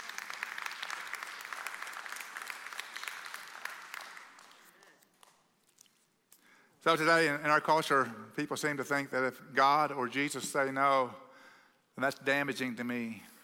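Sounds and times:
audience applause: 0.0s - 5.0s
speech: 6.8s - 11.2s, 12.0s - 13.3s.

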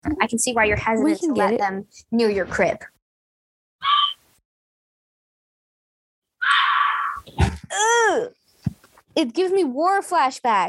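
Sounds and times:
speech: 0.1s - 2.9s, 7.7s - 8.4s, 9.2s - 10.6s
fisher cat screaming: 3.8s - 4.2s, 6.4s - 7.3s.

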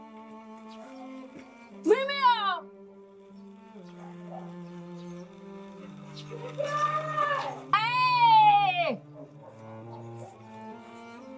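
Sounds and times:
speech: 6.3s - 7.0s
child crying: 6.4s - 9.0s.

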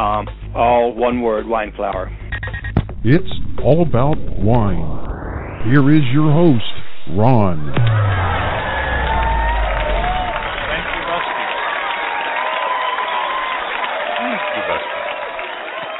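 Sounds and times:
speech: 0.0s - 2.2s, 3.0s - 5.0s, 5.6s - 8.2s
crowd cheering and clapping: 7.8s - 15.9s.

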